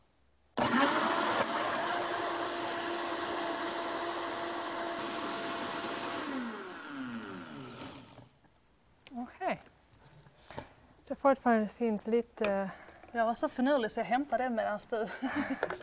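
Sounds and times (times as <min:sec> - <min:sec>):
blender mixing cashew nuts with water: 0:00.6 - 0:08.3
speech: 0:11.2 - 0:15.8
laughter: 0:15.1 - 0:15.8.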